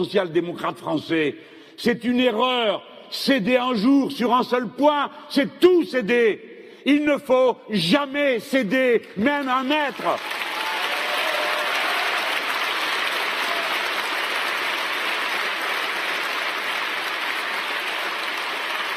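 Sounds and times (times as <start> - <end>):
speech: 0.0 - 10.5
large audience applauding: 9.8 - 18.9.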